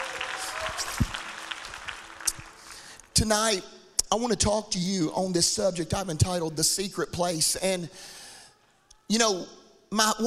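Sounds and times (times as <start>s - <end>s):
audience clapping: 0.0s - 3.3s
speech: 3.2s - 8.2s, 9.1s - 10.2s.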